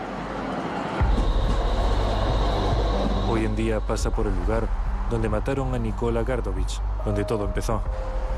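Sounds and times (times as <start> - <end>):
tram running on rails: 0.0 - 5.3
speech: 3.3 - 8.2.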